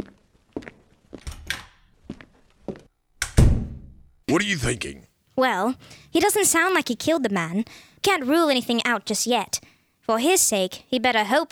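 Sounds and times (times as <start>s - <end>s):
footsteps leaving a room: 0.0s - 2.9s
speech: 4.3s - 11.5s.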